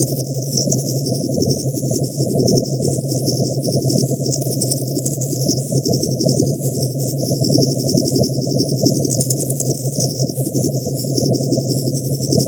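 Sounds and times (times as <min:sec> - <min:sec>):
Osprey aircraft engine: 0:00.0 - 0:12.4.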